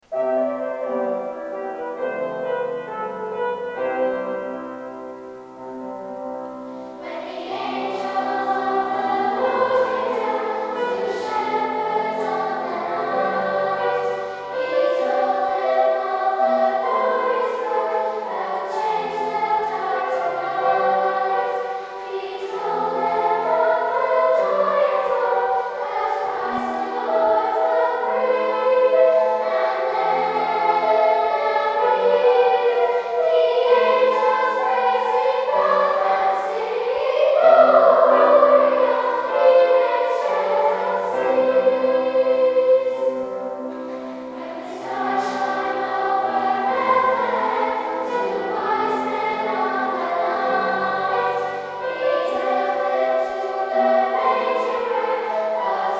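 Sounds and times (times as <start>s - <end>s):
choir singing: 0.1s - 55.9s.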